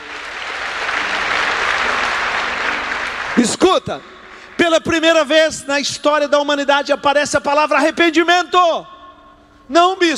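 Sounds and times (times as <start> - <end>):
audience applause: 0.0 - 4.8
speech: 3.4 - 8.9, 9.7 - 10.1.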